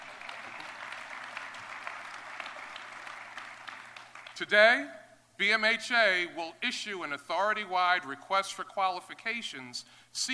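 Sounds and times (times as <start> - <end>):
audience applause: 0.0 - 4.4
speech: 4.4 - 10.3.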